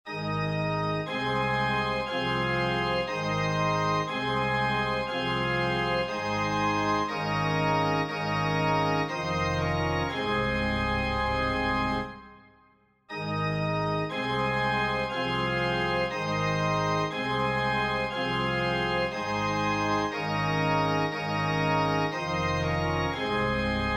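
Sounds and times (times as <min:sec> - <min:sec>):
organ song: 0:00.1 - 0:12.4, 0:13.1 - 0:23.9.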